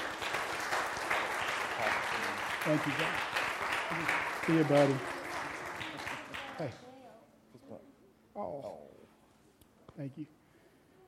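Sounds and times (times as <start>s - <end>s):
audience applause: 0.0s - 6.8s
speech: 2.6s - 5.2s, 6.6s - 6.8s, 10.0s - 10.4s.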